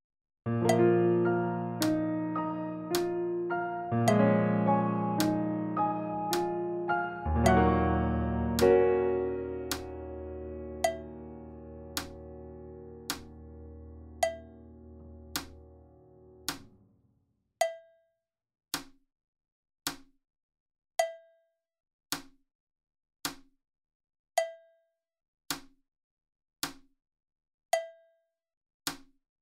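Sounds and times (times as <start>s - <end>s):
piano: 0.5s - 16.9s.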